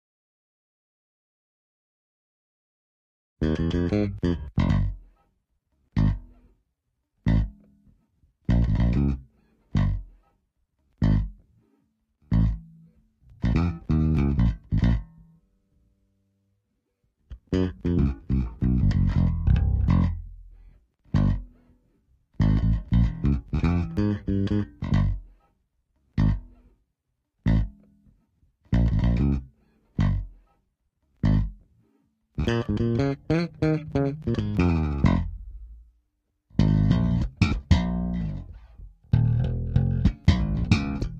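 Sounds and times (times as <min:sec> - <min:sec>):
bass tone: 0:03.4 - 0:05.0, 0:06.0 - 0:06.3, 0:07.3 - 0:07.6, 0:08.5 - 0:10.1, 0:11.0 - 0:11.4, 0:12.3 - 0:12.7, 0:13.3 - 0:15.2, 0:17.3 - 0:21.6, 0:22.4 - 0:25.3, 0:26.2 - 0:26.5, 0:27.5 - 0:27.8, 0:28.8 - 0:30.4, 0:31.2 - 0:31.6, 0:32.4 - 0:36.0, 0:36.6 - 0:41.1.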